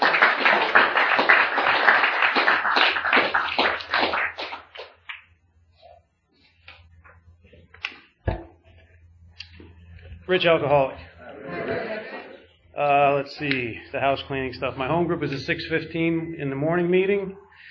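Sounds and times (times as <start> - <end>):
audience cheering and applause for speaker: 0.0 - 5.0
speech: 10.3 - 11.1, 12.8 - 17.4
laughter: 10.9 - 12.6.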